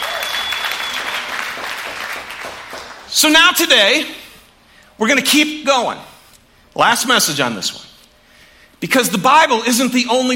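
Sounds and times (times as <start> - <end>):
audience applause: 0.0 - 3.1
speech: 3.1 - 4.2, 5.0 - 6.1, 6.8 - 7.9, 8.8 - 10.3.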